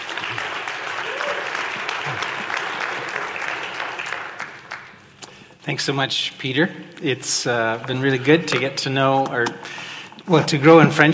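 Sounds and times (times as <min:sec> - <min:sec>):
audience applause welcoming a guest speaker at Gateway: 0:00.0 - 0:05.3
speech: 0:05.6 - 0:11.1.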